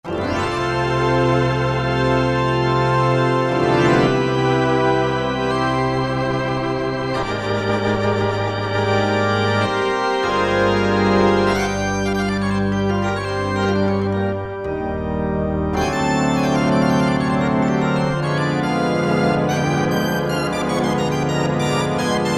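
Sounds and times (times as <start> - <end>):
gospel music on a Yamaha TG33 synthesizer: 0.0 - 22.3.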